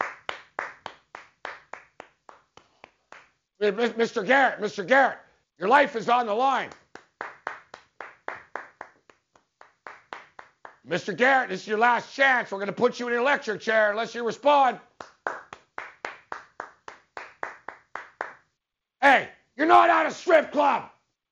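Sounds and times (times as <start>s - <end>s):
hand clapping: 0.0s - 3.4s, 6.6s - 11.0s, 14.9s - 18.5s
speech: 3.6s - 6.8s, 10.9s - 14.9s, 20.1s - 20.9s.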